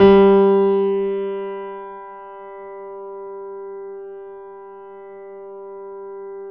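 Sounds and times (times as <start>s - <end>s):
acoustic grand piano: 0.0s - 6.4s.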